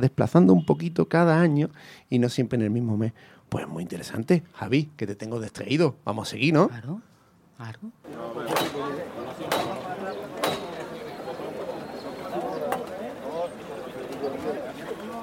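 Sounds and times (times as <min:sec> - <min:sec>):
speech: 0:00.0 - 0:09.8
murmur of crowd chatter: 0:08.0 - 0:15.2
horse hooves clopping: 0:08.1 - 0:15.2.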